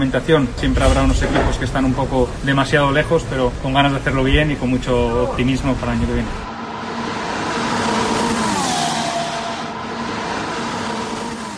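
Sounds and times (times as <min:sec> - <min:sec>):
speech: 0:00.0 - 0:06.5
Formula 1 car engine: 0:06.3 - 0:11.5.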